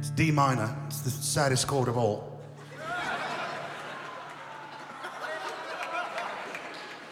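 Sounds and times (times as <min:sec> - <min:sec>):
speech: 0:00.2 - 0:02.3
laughter: 0:02.6 - 0:07.0
crowd applauding: 0:02.8 - 0:07.0.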